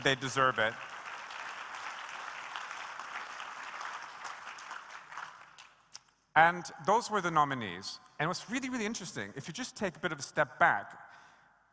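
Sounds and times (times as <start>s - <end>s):
speech: 0.0s - 0.9s, 6.4s - 11.1s
audience applause: 0.0s - 5.7s.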